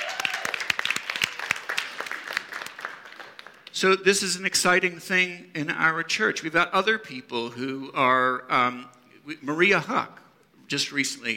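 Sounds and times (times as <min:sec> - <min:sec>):
audience applause: 0:00.0 - 0:03.7
speech: 0:03.8 - 0:11.3.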